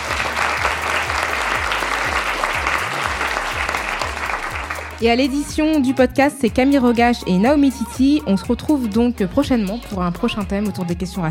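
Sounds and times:
audience applause: 0.0s - 5.0s
speech: 5.0s - 11.2s.

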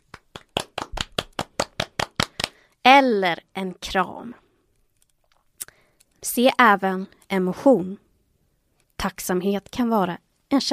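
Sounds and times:
applause: 0.0s - 2.6s
speech: 2.8s - 4.4s, 6.2s - 8.0s, 9.0s - 10.7s.

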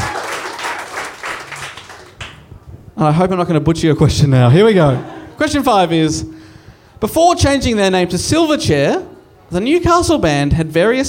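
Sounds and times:
round of applause: 0.0s - 2.5s
speech: 3.0s - 6.4s, 7.0s - 11.0s
laughter: 4.7s - 5.8s.

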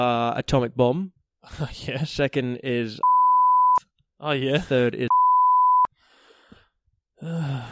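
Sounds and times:
speech: 0.0s - 3.1s, 4.2s - 5.2s, 7.2s - 7.6s
censorship bleep over a word: 3.0s - 3.8s, 5.1s - 5.9s
breathy exhale: 6.0s - 7.6s
groan-like voice: 7.2s - 7.6s.

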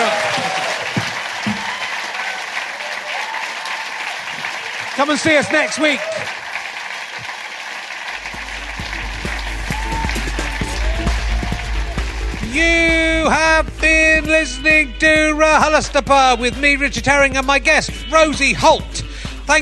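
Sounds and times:
audience applause: 0.0s - 13.6s
speech: 5.0s - 6.4s, 12.6s - 19.5s.

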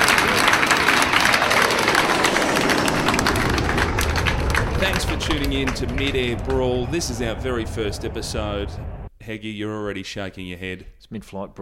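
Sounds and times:
audience applause: 0.0s - 8.4s
speech: 5.4s - 11.5s.

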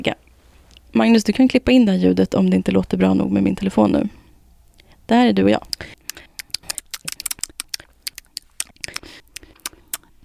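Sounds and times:
speech: 0.0s - 0.2s, 0.9s - 4.2s, 5.1s - 6.0s
lip smacking while eating: 5.7s - 10.2s.

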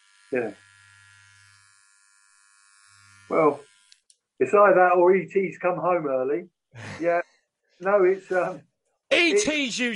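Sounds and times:
electric nose and ear hair trimmer buzzing: 0.0s - 4.1s
speech: 0.3s - 0.7s, 3.3s - 3.7s, 4.4s - 9.9s.

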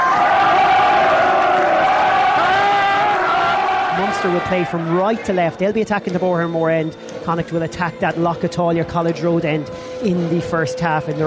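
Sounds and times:
stadium crowd cheering: 0.0s - 5.6s
speech: 4.2s - 11.2s.

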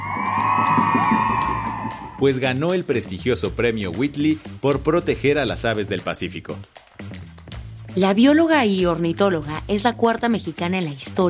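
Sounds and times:
applause and cheering: 0.0s - 2.5s
speech: 0.7s - 6.8s, 8.0s - 11.2s.

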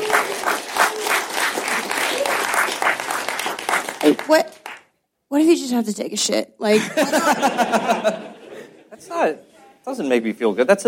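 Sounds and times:
audience applause: 0.0s - 4.9s
speech: 4.3s - 4.6s, 5.3s - 8.3s, 9.0s - 10.8s
laughter: 6.7s - 9.0s.

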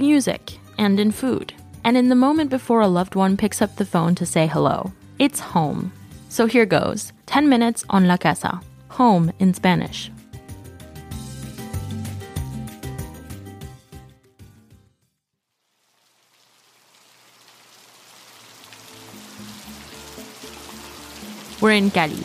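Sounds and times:
speech: 0.0s - 10.2s, 21.6s - 22.2s
music: 0.0s - 15.2s, 18.6s - 22.2s
heavy rain pouring: 15.6s - 22.2s.

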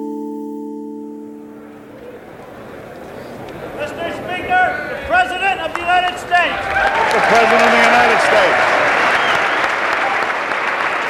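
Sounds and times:
standing ovation and loud applause: 2.3s - 11.0s.

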